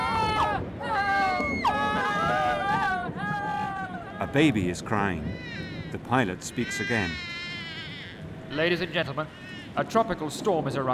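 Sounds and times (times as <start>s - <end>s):
panicking passengers screaming on a plane: 0.0s - 8.7s
speech: 4.4s - 7.3s, 8.5s - 10.9s.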